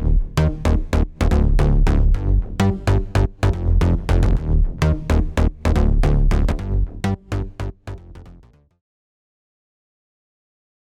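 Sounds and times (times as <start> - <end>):
bass with clipper on: 0.0 - 8.6.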